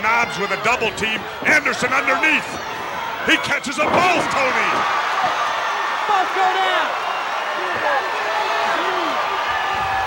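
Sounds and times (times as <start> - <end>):
wrestling arena crowd erupting in Houston: 0.0 - 10.0
speech: 0.2 - 5.5, 6.1 - 7.0, 7.6 - 8.2.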